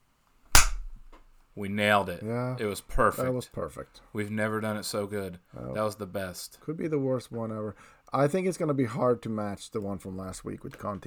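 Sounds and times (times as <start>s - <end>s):
two people clapping hands in unison: 0.6s - 1.2s
speech: 1.6s - 11.0s.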